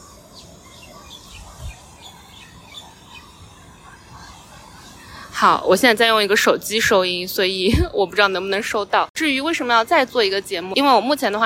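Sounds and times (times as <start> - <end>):
birds chirping: 0.0 - 9.1
speech: 5.4 - 11.4.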